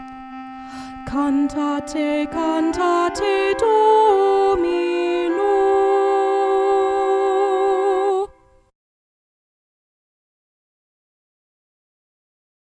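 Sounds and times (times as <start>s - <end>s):
soprano singing: 0.0s - 8.6s.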